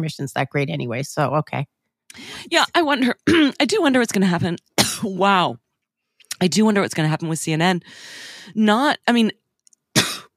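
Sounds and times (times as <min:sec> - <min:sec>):
speech: 0:00.0 - 0:05.6, 0:06.4 - 0:09.4
person coughing and spluttering after choking on saliva: 0:03.2 - 0:03.6, 0:04.8 - 0:05.1, 0:10.0 - 0:10.3
strained voiced gasps: 0:07.8 - 0:08.5.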